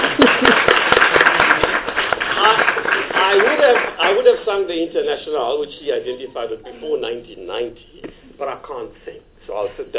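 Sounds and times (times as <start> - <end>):
audience applause: 0.0 - 4.4
speech: 4.7 - 9.9.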